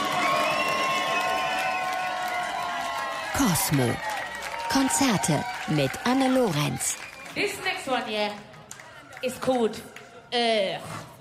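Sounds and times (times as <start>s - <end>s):
high whoops and shouts from a hip-hop concert crowd: 0.0s - 5.7s
hip-hop concert crowd cheering: 0.0s - 10.2s
speech: 3.4s - 8.5s, 9.2s - 11.0s.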